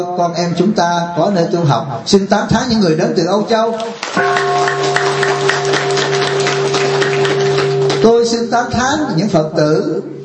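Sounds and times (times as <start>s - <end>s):
speech: 0.0s - 5.8s, 8.0s - 10.2s
large audience applause: 3.8s - 8.1s.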